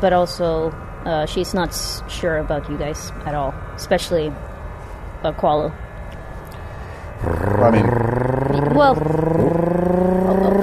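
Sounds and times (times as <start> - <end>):
speech: 0.0 - 4.5, 5.2 - 5.8, 7.2 - 8.2, 8.8 - 9.6
spaceship's engines firing up in a sci-fi story: 0.0 - 10.6.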